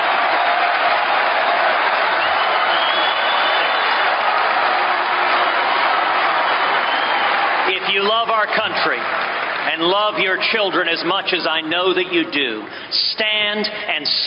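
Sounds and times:
convention crowd applauding: 0:00.0 - 0:10.8
speech: 0:08.3 - 0:14.2.

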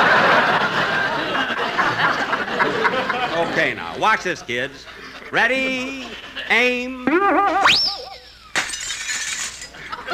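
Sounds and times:
laughter: 0:00.0 - 0:08.6, 0:09.7 - 0:10.1
speech: 0:03.6 - 0:08.0
arrow smashing through a glass window: 0:08.5 - 0:09.8.

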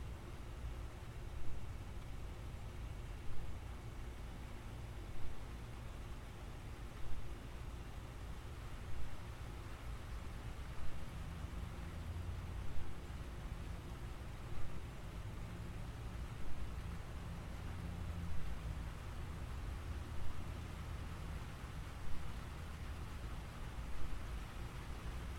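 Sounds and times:
gentle rain falling in steady hiss: 0:00.0 - 0:25.3.

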